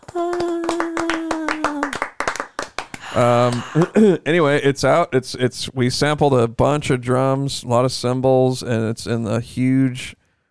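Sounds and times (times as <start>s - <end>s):
hand clapping: 0.0s - 4.0s
speech: 0.2s - 0.5s, 3.2s - 10.2s.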